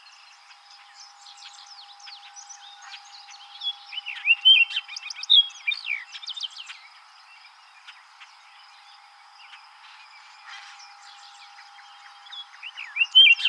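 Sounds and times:
Orchard oriole song: 0:00.9 - 0:06.8, 0:10.8 - 0:13.4.

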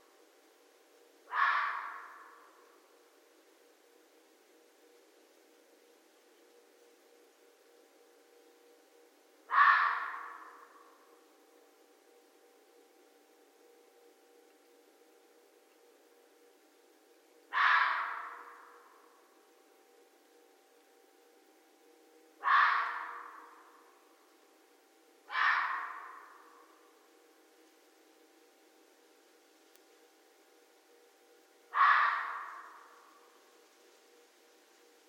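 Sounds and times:
red fox harsh call: 0:01.3 - 0:02.6, 0:09.5 - 0:11.0, 0:17.5 - 0:19.0, 0:22.4 - 0:23.8, 0:25.2 - 0:26.8, 0:31.7 - 0:33.2.

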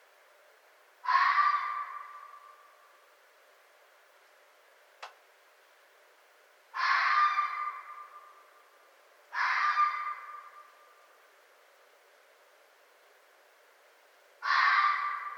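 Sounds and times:
red fox uttering hoarse screams: 0:01.0 - 0:02.7, 0:06.7 - 0:08.4, 0:09.3 - 0:11.0, 0:14.4 - 0:15.3.

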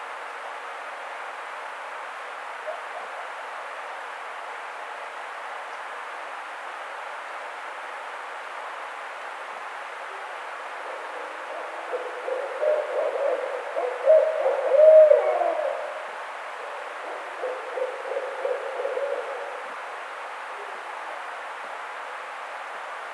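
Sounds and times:
Barred Owl calling: 0:10.1 - 0:20.9.

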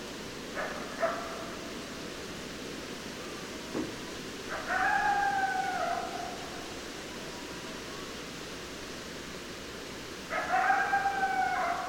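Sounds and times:
background hiss: 0:00.0 - 0:11.8
coyote howling: 0:04.5 - 0:06.7, 0:10.3 - 0:11.8.

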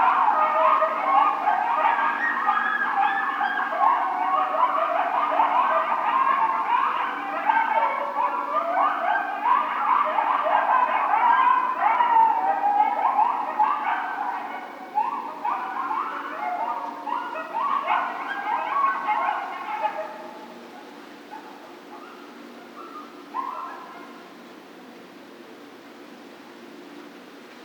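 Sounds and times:
coyotes yipping and howling in chorus: 0:00.0 - 0:25.6.

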